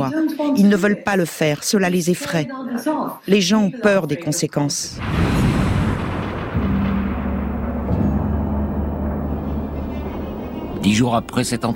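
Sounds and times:
speech: 0.6s - 5.6s, 10.8s - 11.7s
car bomb explosion of a journalist's car in Malta: 5.0s - 10.9s.

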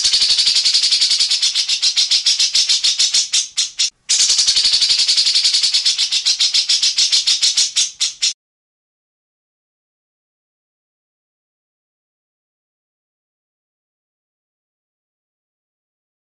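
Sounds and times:
grey-cheeked bulbul harsh rattling song: 0.0s - 8.4s.

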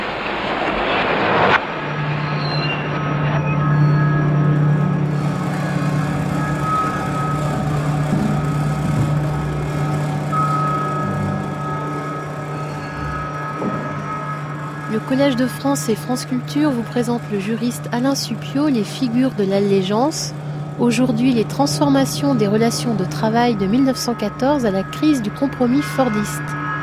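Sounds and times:
rushing noise: 0.0s - 15.8s
new car's engine starting and idling at end of an assembly line: 5.0s - 25.6s
speech: 15.2s - 26.6s.

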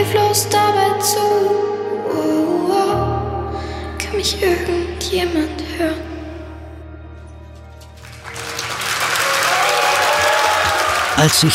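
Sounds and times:
speech: 0.3s - 3.0s, 4.1s - 6.1s, 11.2s - 11.5s
theater audience thunderous applause: 8.0s - 11.5s.

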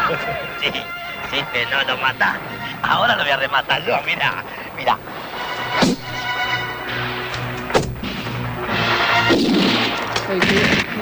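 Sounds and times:
laughter: 0.0s - 5.5s
steady humming video game soundtrack: 0.0s - 10.9s
speech: 0.1s - 5.2s, 9.3s - 10.9s
video game gunshots: 7.7s - 10.9s.

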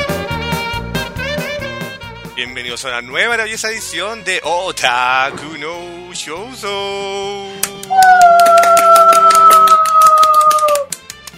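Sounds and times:
speech: 2.4s - 9.0s
sustained musical tones: 4.9s - 9.4s
hand claps: 7.6s - 11.3s.

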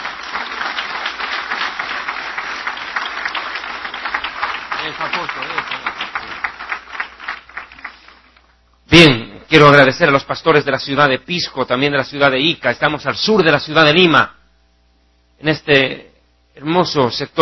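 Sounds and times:
audience applause: 0.0s - 8.4s
speech: 5.0s - 6.0s, 8.9s - 14.4s, 15.4s - 17.4s.

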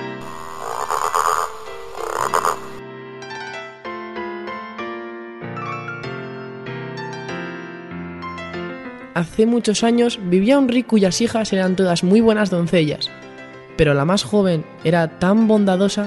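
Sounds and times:
frog croaking: 0.0s - 2.8s
speech: 9.2s - 13.2s, 13.8s - 16.0s.

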